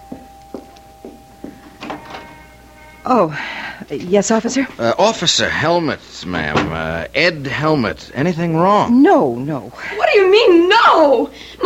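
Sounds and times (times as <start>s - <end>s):
front door bell ringing: 0.0s - 7.9s
speech: 3.1s - 11.6s.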